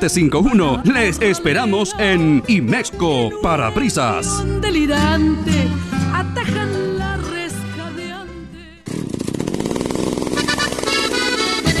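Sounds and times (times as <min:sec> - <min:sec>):
speech: 0:00.0 - 0:06.8
chainsaw running: 0:08.8 - 0:11.7.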